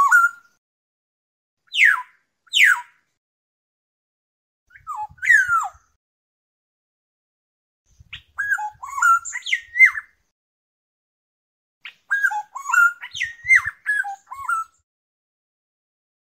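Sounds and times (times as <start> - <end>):
black-naped oriole fluting whistles: 0.0 - 0.6, 4.7 - 5.9, 8.1 - 10.1, 11.8 - 14.8.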